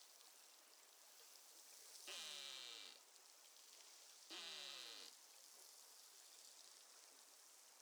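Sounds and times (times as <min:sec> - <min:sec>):
beluga whale calls: 0:02.1 - 0:03.0, 0:04.3 - 0:05.1.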